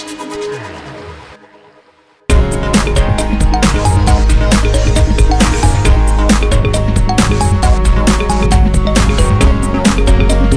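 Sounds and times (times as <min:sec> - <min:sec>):
liquid dub breakbeat: 0:02.3 - 0:10.5.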